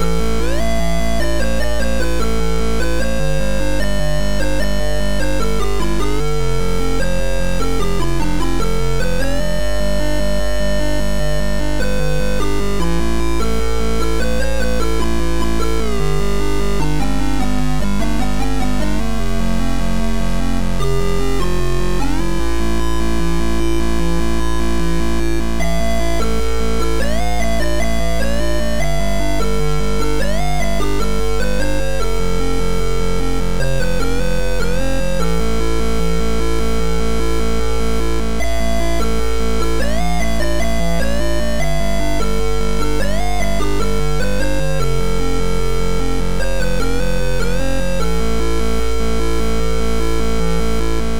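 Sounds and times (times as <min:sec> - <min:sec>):
Amiga chiptune music: 0:00.1 - 0:51.1.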